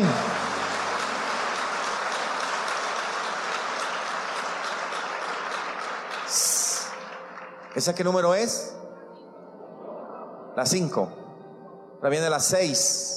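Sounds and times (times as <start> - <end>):
audience applause: 0.0 - 8.7
speech: 7.8 - 8.8, 10.6 - 11.2, 12.0 - 13.1.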